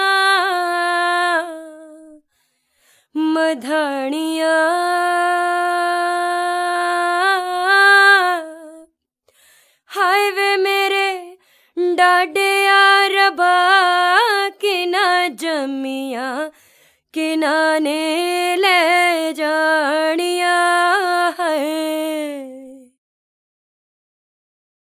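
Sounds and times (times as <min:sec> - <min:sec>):
Indian vocals: 0:00.0 - 0:23.0.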